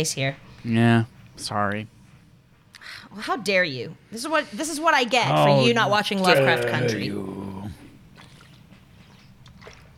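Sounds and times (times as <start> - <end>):
speech: 0.0 - 2.0, 2.8 - 7.4
person drinking a gulp of water: 8.1 - 8.7, 9.4 - 9.9.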